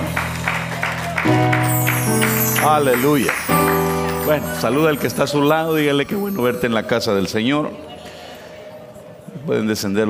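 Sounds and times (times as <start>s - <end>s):
audience applauding: 0.0s - 7.5s
organ or keyboard chords: 0.0s - 8.2s
speech: 2.6s - 3.4s, 4.2s - 7.9s, 9.5s - 10.0s.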